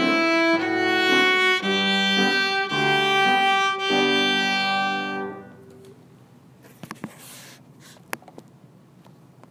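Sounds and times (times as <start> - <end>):
two-step march on piano: 0.0 - 5.7.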